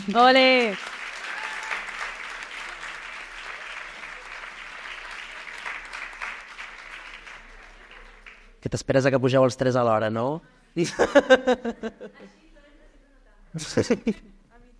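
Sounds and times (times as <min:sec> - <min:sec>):
speech: 0:00.0 - 0:00.9, 0:08.6 - 0:12.4, 0:13.5 - 0:14.3
audience applause: 0:00.0 - 0:08.6
laughter: 0:10.8 - 0:12.3, 0:13.6 - 0:14.3.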